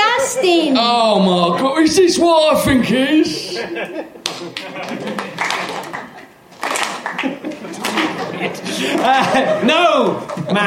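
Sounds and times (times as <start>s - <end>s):
speech: 0.4s - 6.1s, 7.1s - 10.6s
laughter: 3.1s - 10.6s
person clapping hands: 4.2s - 8.3s.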